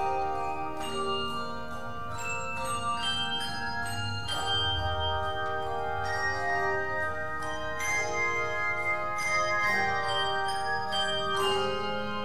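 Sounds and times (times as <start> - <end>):
handbells ringing: 0.0 - 12.2.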